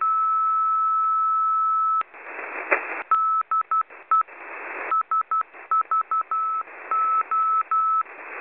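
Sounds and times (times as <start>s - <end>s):
morse code beeps: 0.0s - 2.0s, 3.1s - 4.3s, 4.9s - 8.0s.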